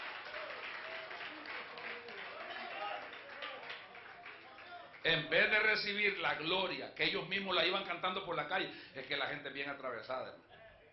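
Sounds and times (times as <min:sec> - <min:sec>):
audience applauding: 0:00.0 - 0:05.7
speech: 0:05.0 - 0:10.5.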